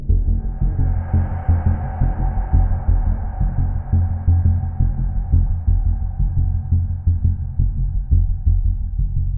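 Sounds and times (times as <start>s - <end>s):
synth bass thunder: 0.2s - 9.3s.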